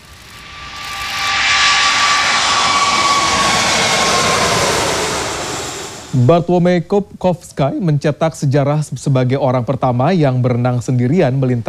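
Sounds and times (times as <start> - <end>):
Airbus A380 jet aircraft engines roaring: 0.0 - 6.6
speech: 6.2 - 11.6.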